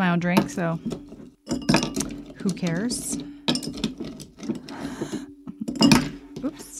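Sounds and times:
speech: 0.1s - 1.6s, 2.4s - 3.8s
ice cubes clinking into a glass: 1.5s - 4.8s.

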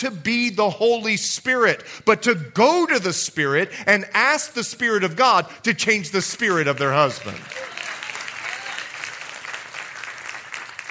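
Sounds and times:
speech: 0.0s - 7.7s
audience members clapping: 6.4s - 10.8s.

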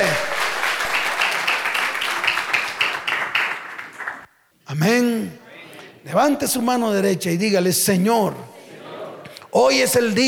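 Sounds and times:
audience applause: 0.0s - 4.3s
speech: 6.2s - 8.5s, 9.5s - 10.2s.

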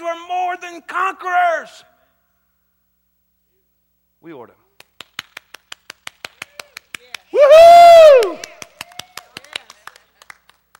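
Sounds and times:
speech: 0.2s - 1.9s, 4.2s - 4.6s, 7.4s - 8.5s
audience clapping in rhythm: 4.8s - 10.7s.

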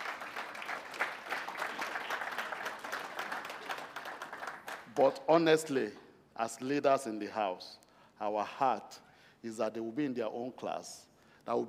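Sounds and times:
audience applauding: 0.0s - 4.9s
speech: 5.0s - 11.6s.

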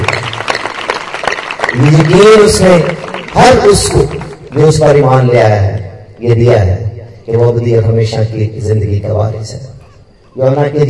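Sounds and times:
audience clapping: 0.0s - 5.3s
speech: 1.8s - 9.8s, 10.4s - 10.8s.

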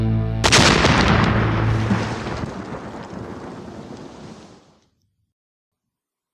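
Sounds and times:
drone strike explosion sound effect: 0.4s - 4.8s.

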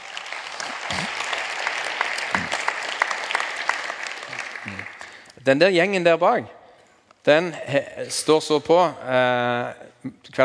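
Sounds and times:
audience applause: 0.0s - 5.3s
speech: 5.5s - 6.6s, 7.2s - 10.4s.

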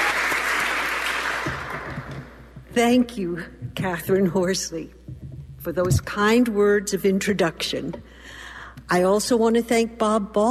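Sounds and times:
audience applause welcoming a speaker at a live fundraising event: 0.0s - 2.1s
speech: 2.8s - 5.0s, 5.6s - 10.4s.

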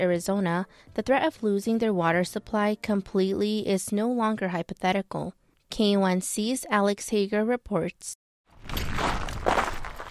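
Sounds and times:
speech: 0.0s - 8.8s
footsteps on crunchy red dirt: 8.5s - 10.0s.

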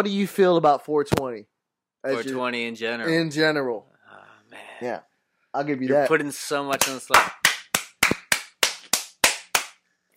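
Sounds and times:
speech: 0.0s - 3.9s, 4.5s - 7.4s
sharp crisp slaps: 6.7s - 9.8s.

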